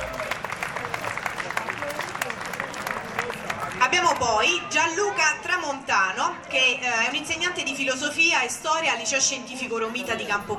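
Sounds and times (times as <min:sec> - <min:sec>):
audience applause: 0:00.0 - 0:03.9
speech: 0:04.2 - 0:10.5.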